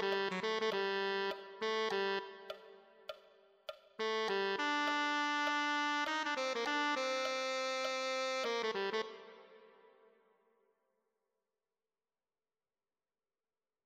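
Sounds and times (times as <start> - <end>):
tenor saxophone: 0.0 - 3.1, 4.0 - 10.2.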